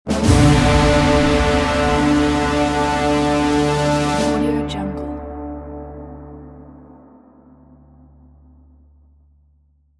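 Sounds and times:
horn: 0.0 - 7.8.

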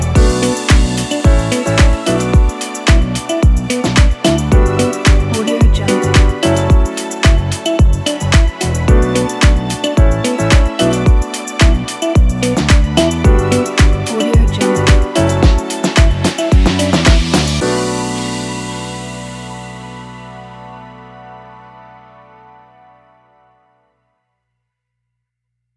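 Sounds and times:
funky disco pop music: 0.0 - 17.9.

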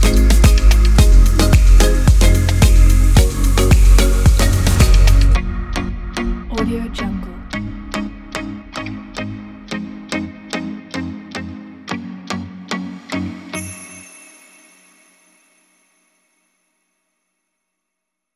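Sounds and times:
pop music: 0.0 - 14.1.

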